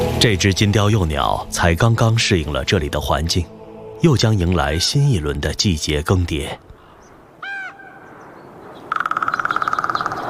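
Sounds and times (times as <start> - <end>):
speech: 0.2 - 6.7
crow calling: 4.6 - 5.2, 6.7 - 10.2.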